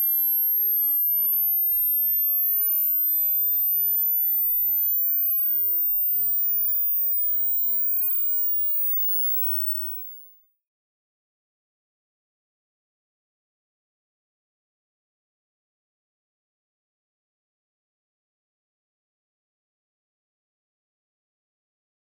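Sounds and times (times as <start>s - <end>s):
oscillating sine test tone ascending 20Hz to 20Khz: 0.0s - 10.4s.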